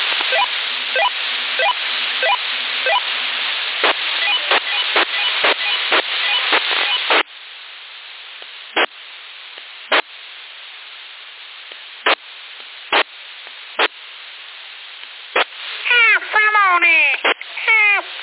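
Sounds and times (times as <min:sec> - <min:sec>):
CB radio clicks and static bursts: 0:00.0 - 0:10.3, 0:11.0 - 0:18.2
cat meowing over a CB radio channel in Sassari: 0:15.9 - 0:18.2.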